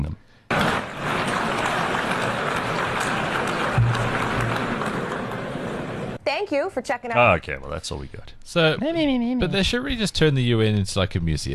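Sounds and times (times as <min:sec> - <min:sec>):
audience applause: 0:00.5 - 0:06.2
speech: 0:06.4 - 0:11.5.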